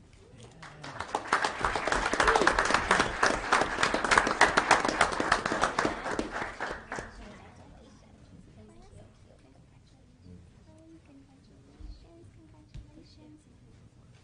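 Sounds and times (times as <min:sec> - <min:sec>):
audience applause: 0:00.6 - 0:07.2.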